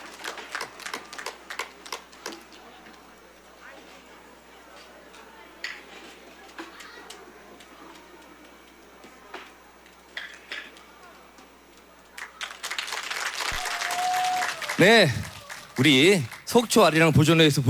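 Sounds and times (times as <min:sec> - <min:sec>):
audience applause after a performance: 0:00.0 - 0:02.8, 0:12.1 - 0:16.9
speech: 0:14.8 - 0:17.6.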